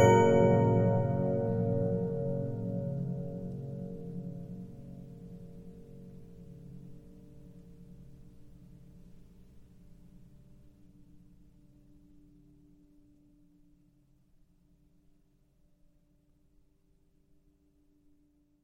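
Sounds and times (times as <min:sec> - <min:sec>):
Regina 15-inch disc music box: 0:00.0 - 0:03.7.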